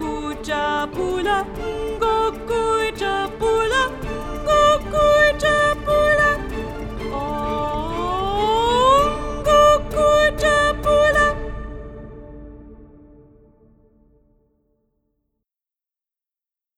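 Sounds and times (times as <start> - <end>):
soprano singing: 0.0 - 12.8.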